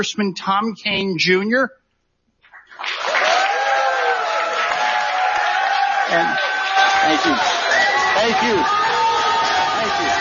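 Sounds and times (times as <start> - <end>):
speech: 0.0 - 1.8, 6.1 - 7.6, 8.2 - 8.8
audience applause welcoming congressional candidates at a political candidate forum: 2.7 - 10.2
people cheering: 2.8 - 10.2.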